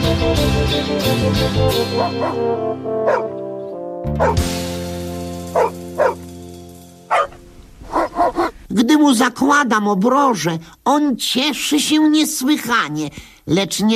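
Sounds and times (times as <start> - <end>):
speech: 0.8 - 3.4, 4.0 - 4.7, 8.7 - 13.9
dog barking: 2.0 - 2.4, 3.0 - 3.4, 4.2 - 4.4, 5.5 - 6.2, 7.1 - 8.6.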